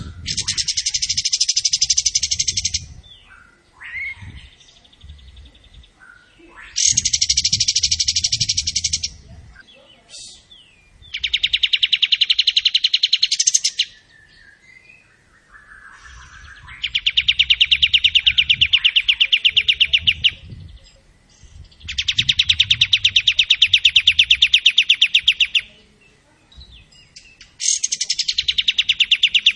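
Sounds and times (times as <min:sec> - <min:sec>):
Tembakan bird singing vigorously: 0:00.0 - 0:29.5.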